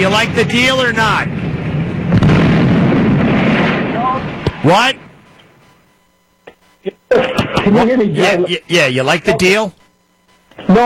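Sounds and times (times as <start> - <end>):
speech: 0.0 - 1.5, 4.2 - 5.0, 6.8 - 9.8, 10.6 - 10.8
gunshots: 2.0 - 5.2
laughter: 6.8 - 8.1.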